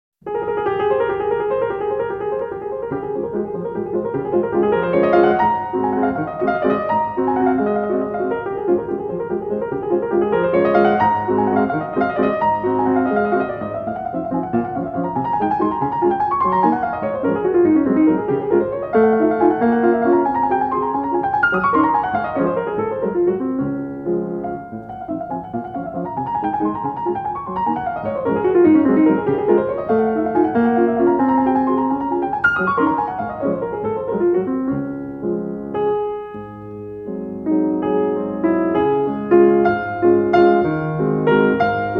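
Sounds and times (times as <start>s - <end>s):
waltz in D flat: 0.2s - 41.9s.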